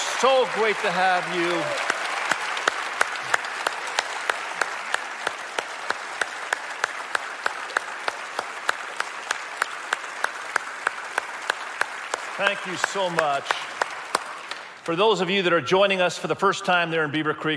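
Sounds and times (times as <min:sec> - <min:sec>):
audience applause: 0:00.0 - 0:15.2
speech: 0:00.2 - 0:01.9, 0:12.4 - 0:13.7, 0:14.9 - 0:17.5.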